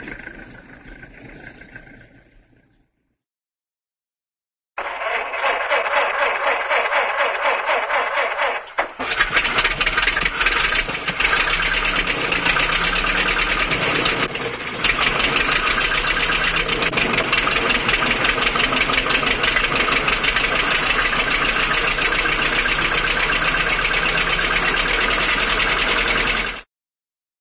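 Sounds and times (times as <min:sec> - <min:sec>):
Model A car starting and pulling away, cartoon: 0:04.8 - 0:26.7.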